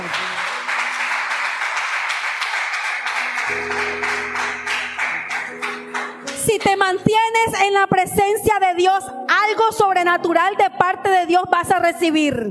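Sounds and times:
audience applauding: 0:00.0 - 0:06.8
speech: 0:06.6 - 0:12.4.

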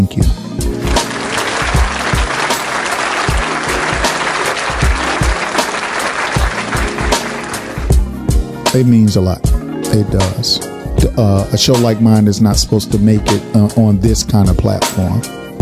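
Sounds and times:
round of applause: 0:00.8 - 0:08.0
speech: 0:08.7 - 0:15.4.

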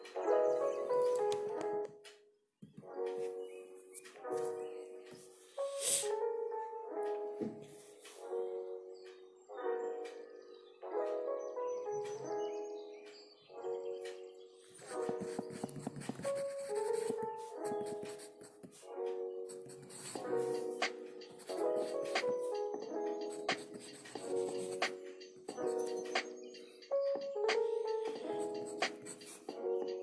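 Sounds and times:
soft piano playing mid-range chords and melody: 0:00.0 - 0:30.0
light scratchy pencil sounds: 0:05.6 - 0:06.2, 0:14.8 - 0:18.8, 0:19.5 - 0:26.2, 0:27.9 - 0:30.0.

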